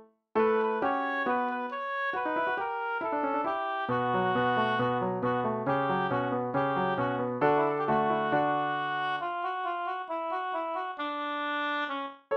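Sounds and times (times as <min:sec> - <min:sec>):
oboe: 0:00.4 - 0:12.2.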